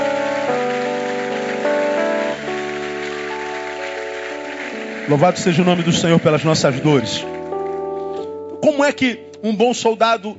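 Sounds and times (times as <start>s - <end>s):
audience applauding loudly: 0.0s - 8.0s
sustained keyboard chords: 0.0s - 10.3s
speech: 5.1s - 7.4s, 8.8s - 10.3s.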